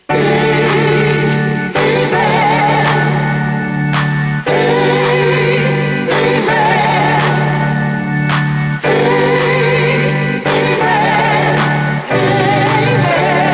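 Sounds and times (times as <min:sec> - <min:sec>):
gospel music: 0:00.0 - 0:13.5.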